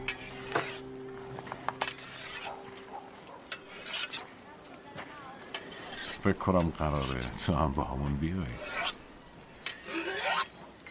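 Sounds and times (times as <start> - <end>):
cleaver being sharpened: 0.0 - 0.9, 1.8 - 2.7, 3.4 - 4.3, 5.5 - 7.4, 8.6 - 10.6
speech: 6.2 - 8.8.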